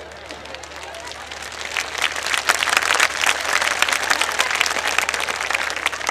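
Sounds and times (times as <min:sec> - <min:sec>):
audience clapping: 0:00.0 - 0:06.0.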